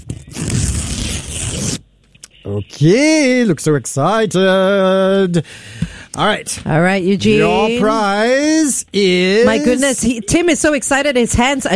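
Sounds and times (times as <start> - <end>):
paper envelope being ripped open to reveal a prize: 0.0 - 1.8
speech: 2.5 - 11.7.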